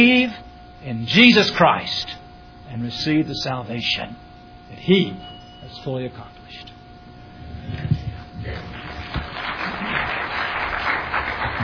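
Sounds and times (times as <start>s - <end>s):
speech: 0.0s - 6.7s
audience applause: 8.6s - 11.6s.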